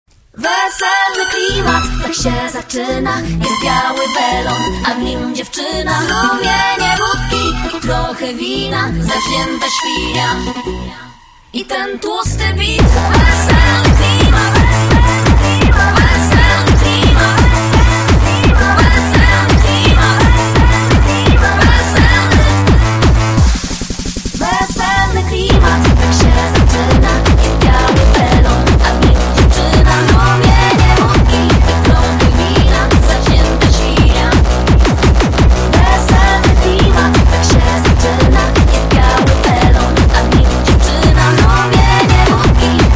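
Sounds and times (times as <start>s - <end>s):
wedding-style hardstyle remix: 0.3s - 42.9s.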